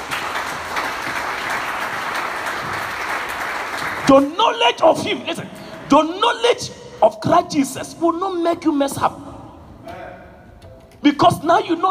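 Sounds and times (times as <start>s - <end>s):
audience clapping: 0.0s - 4.3s
speech: 4.1s - 9.2s, 11.2s - 11.9s.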